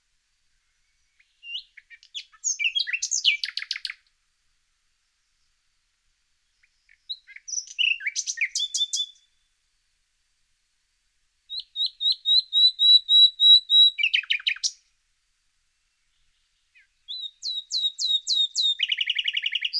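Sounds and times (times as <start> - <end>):
common nightingale song: 0.0 - 9.9, 11.4 - 19.7.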